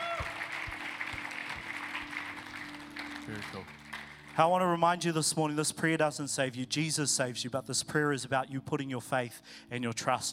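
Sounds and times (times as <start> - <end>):
church applause: 0.0 - 4.8
speech: 3.3 - 3.8, 4.4 - 10.3.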